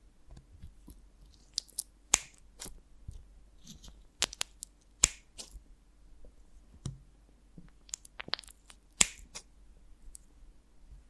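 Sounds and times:
honeycomb on a branch crackling and snapping: 0:01.3 - 0:02.8, 0:03.6 - 0:05.6, 0:07.8 - 0:09.5.

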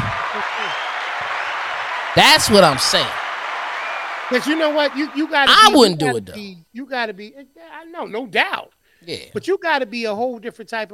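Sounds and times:
audience clapping: 0:00.0 - 0:06.2
speech: 0:02.2 - 0:03.2, 0:04.3 - 0:10.9.

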